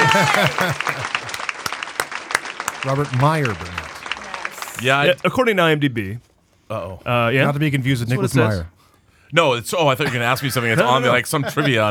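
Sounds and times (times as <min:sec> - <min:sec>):
applause sound effect: 0:00.0 - 0:05.4
laughter: 0:00.0 - 0:06.1, 0:09.8 - 0:11.8
speech: 0:00.1 - 0:01.4, 0:02.8 - 0:03.8, 0:04.8 - 0:08.7, 0:09.3 - 0:11.8.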